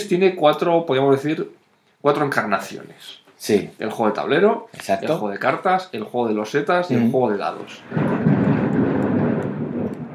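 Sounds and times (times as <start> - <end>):
speech: 0.0 - 8.3
thunder: 7.7 - 10.1.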